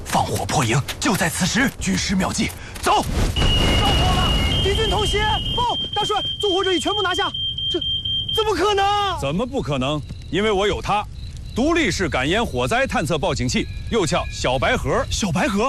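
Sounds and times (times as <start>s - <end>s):
commotion: 0.0s - 15.6s
speech: 0.3s - 4.0s, 4.6s - 15.6s
standalone household smoke detector alarm: 3.4s - 15.6s
people shouting: 3.7s - 6.2s.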